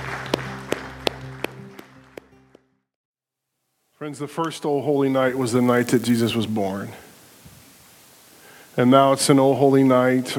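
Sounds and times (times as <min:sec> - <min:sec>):
crowd applause: 0:00.0 - 0:02.5
speech: 0:04.0 - 0:07.0, 0:08.8 - 0:10.3.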